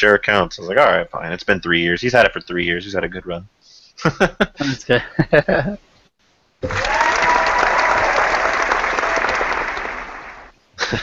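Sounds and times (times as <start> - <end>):
speech: 0.0 - 5.9, 6.6 - 7.1
audience clapping: 6.6 - 10.6.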